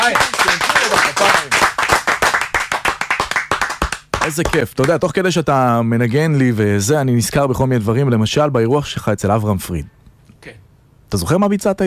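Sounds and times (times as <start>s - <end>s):
speech: 0.0s - 1.4s, 4.3s - 11.8s
hands clapping: 0.0s - 5.0s.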